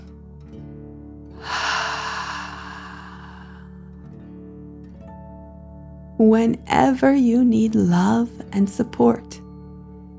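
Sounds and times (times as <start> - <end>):
deep dragon breath during guided relaxation: 1.4 - 4.0
speech: 6.2 - 9.4.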